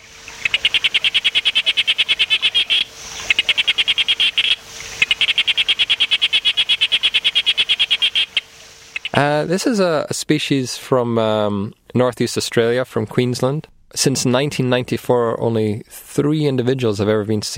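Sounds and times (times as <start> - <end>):
sharp-snouted day frog calling: 0.0 - 9.4
speech: 9.2 - 17.5.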